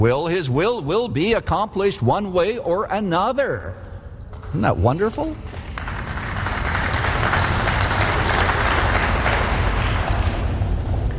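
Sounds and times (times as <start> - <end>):
speech: 0.0 - 3.8, 4.5 - 5.6
audience applause: 5.5 - 10.5.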